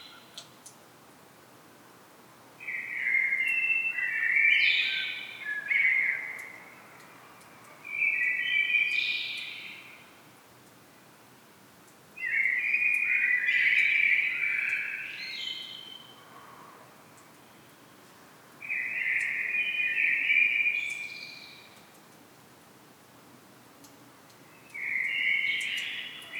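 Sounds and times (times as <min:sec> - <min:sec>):
Common blackbird song: 0:02.6 - 0:10.1, 0:12.2 - 0:16.2, 0:17.2 - 0:22.0, 0:24.4 - 0:26.3.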